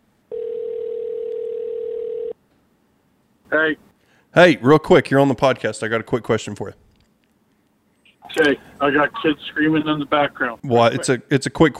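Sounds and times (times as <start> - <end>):
telephone dial tone: 0.3 - 2.4
speech: 3.5 - 6.8, 8.4 - 11.7.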